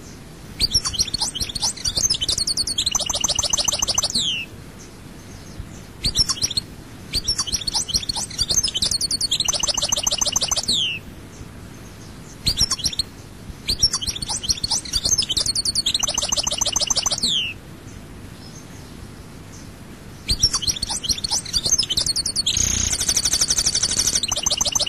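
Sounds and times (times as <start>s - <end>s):
European goldfinch song: 0.6s - 4.5s, 5.2s - 11.0s, 11.9s - 17.6s, 19.5s - 24.8s.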